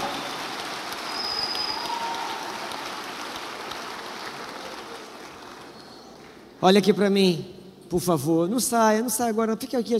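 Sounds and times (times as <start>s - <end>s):
audience applauding: 0.0s - 6.4s
speech: 6.6s - 9.9s.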